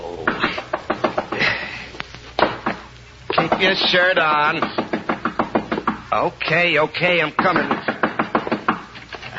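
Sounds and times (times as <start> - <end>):
sharp knocks on a door: 0.3 - 1.5, 2.4 - 6.0, 7.4 - 8.9
speech: 3.6 - 4.8, 6.1 - 7.8.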